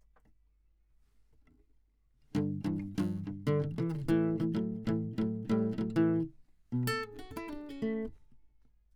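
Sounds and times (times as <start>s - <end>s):
classical guitar: 2.3s - 8.3s.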